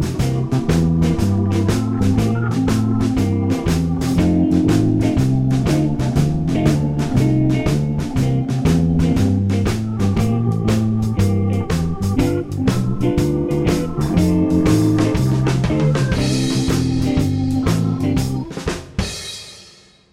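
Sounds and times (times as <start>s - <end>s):
shuffle blues music in C: 0.0s - 19.8s.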